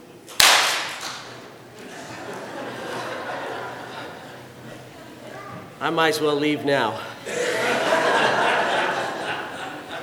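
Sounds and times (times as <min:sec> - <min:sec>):
audience clapping hands over heads: 0:00.4 - 0:01.3
laughter: 0:01.8 - 0:05.4, 0:06.9 - 0:10.0
speech: 0:05.8 - 0:07.1.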